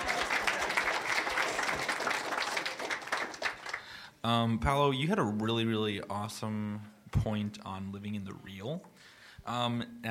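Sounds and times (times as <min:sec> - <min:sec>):
audience applause: 0:00.0 - 0:04.1
speech: 0:04.2 - 0:10.0.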